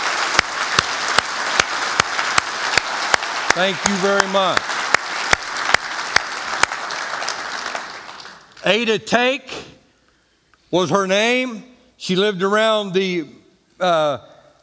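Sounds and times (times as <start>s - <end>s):
audience applause: 0.0s - 8.6s
speech: 3.6s - 4.7s, 8.6s - 9.6s, 10.7s - 14.3s.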